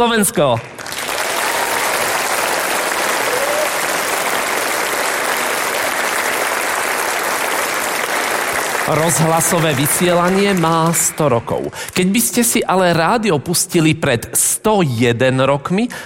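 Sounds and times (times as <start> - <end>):
speech: 0.0 - 0.8, 8.9 - 16.0
audience applause at a live event: 0.6 - 11.7.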